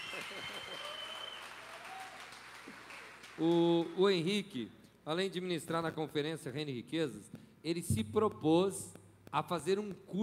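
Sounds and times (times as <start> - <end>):
audience applause: 0.0 - 4.0
speech: 0.2 - 1.0, 3.4 - 10.2.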